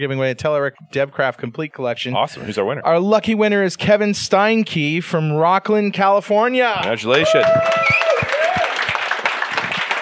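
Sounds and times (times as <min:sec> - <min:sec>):
speech: 0:00.0 - 0:08.0
audience applause: 0:06.8 - 0:09.9
whistles: 0:07.7 - 0:08.4.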